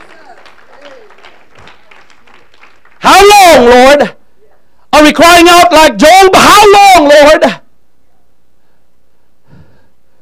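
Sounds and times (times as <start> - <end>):
audience clapping hands in a dense steady burst: 0.0 - 3.6
speech: 3.0 - 4.2, 5.0 - 7.6.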